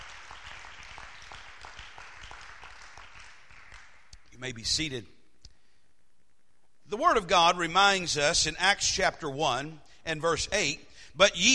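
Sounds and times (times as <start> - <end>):
audience clapping: 0.0 - 4.4
speech: 4.4 - 5.2, 6.9 - 11.5.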